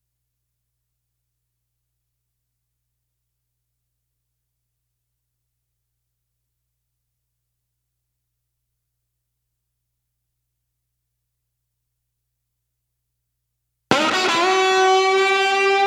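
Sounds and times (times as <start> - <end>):
lead guitar: 13.9 - 15.8.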